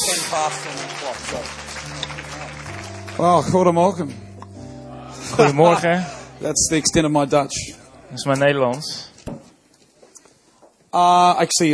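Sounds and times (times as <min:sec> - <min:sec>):
crowd applauding a band: 0:00.0 - 0:03.9
speech: 0:00.3 - 0:02.2, 0:03.2 - 0:04.2, 0:05.3 - 0:09.1, 0:10.9 - 0:11.7
laughter: 0:05.0 - 0:06.6.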